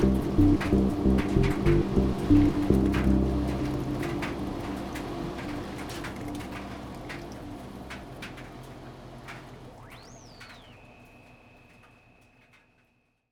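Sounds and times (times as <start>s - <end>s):
synthesizer: 0.0s - 12.2s.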